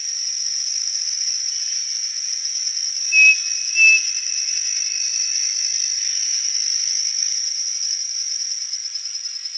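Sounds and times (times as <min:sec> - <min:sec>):
bird whistling: 0:03.1 - 0:04.3.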